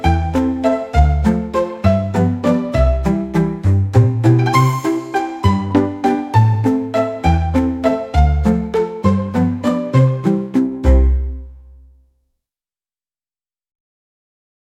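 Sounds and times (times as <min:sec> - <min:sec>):
slapstick comedy music: 0:00.0 - 0:11.6.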